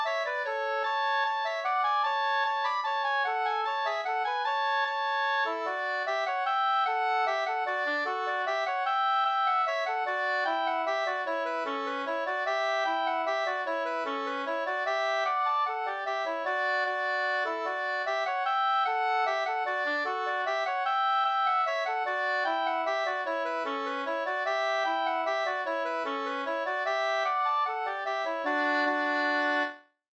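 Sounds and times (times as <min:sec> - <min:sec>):
langdans folk dance music: 0:00.1 - 0:29.8.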